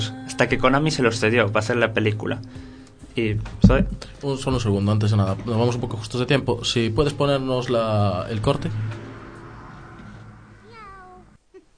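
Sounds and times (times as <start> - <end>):
speech: 0.4 - 9.0
low rumble: 7.3 - 11.4
cat meowing: 10.6 - 11.4.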